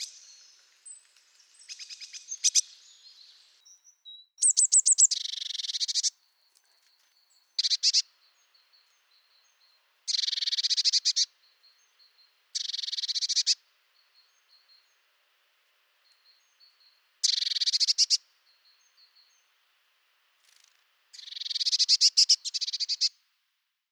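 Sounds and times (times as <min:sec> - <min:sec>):
blue tit calling: 0:01.6 - 0:02.8, 0:04.4 - 0:06.1, 0:07.5 - 0:15.0, 0:16.1 - 0:19.3, 0:21.2 - 0:23.2.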